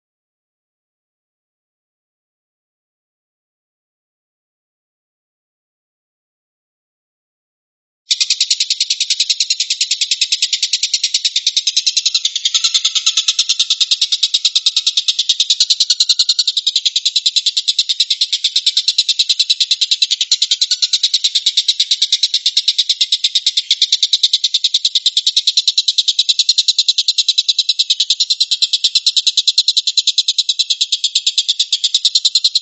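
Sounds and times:
stork-billed kingfisher rattling call: 0:08.1 - 0:32.6.

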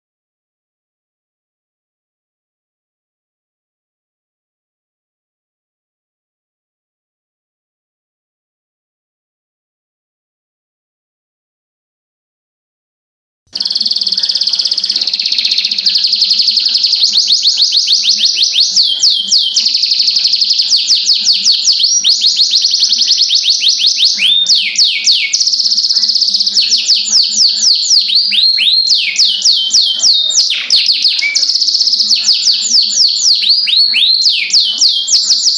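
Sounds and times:
canary singing: 0:13.5 - 0:35.5.

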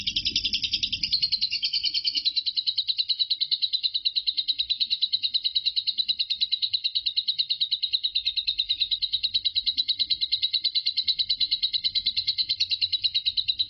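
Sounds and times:
lovebird chattering in ngekek style: 0:00.0 - 0:13.6.

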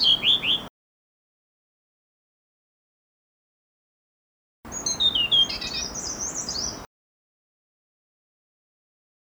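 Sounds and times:
blue-throated blue flycatcher song: 0:00.0 - 0:00.7, 0:04.7 - 0:06.9.

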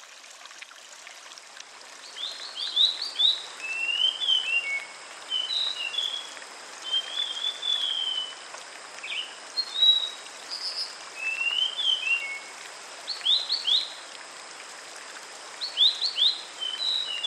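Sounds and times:
background hiss: 0:00.9 - 0:17.2
Sulingan bird singing whistled phrases: 0:02.2 - 0:08.3, 0:09.1 - 0:12.5, 0:15.7 - 0:17.2.

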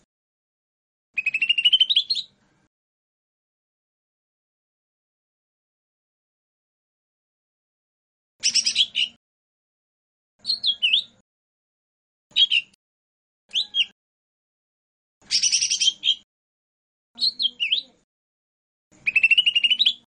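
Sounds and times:
lesser green leafbird whistled song: 0:01.2 - 0:02.3, 0:08.4 - 0:09.2, 0:10.4 - 0:11.2, 0:12.4 - 0:12.8, 0:13.5 - 0:13.9, 0:15.2 - 0:16.2, 0:17.2 - 0:18.0, 0:19.0 - 0:20.1.

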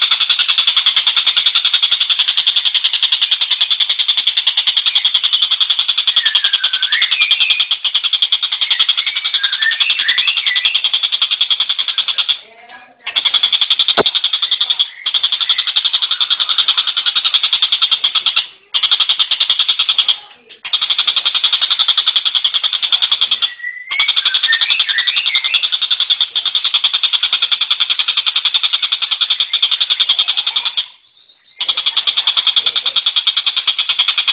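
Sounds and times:
tengkek buto kingfisher calling: 0:00.0 - 0:34.3.

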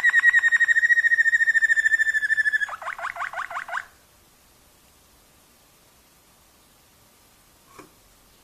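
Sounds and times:
Waterslager canary singing bubbling dipping notes: 0:00.0 - 0:04.0.

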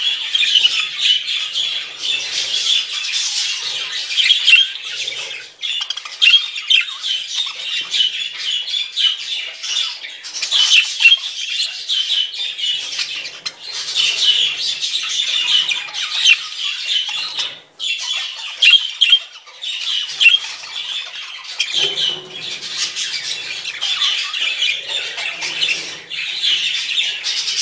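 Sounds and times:
flock of parakeets calling together: 0:00.0 - 0:27.6.

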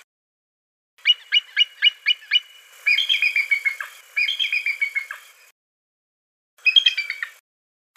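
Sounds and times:
bald eagle calling: 0:01.0 - 0:05.5, 0:06.7 - 0:07.3.

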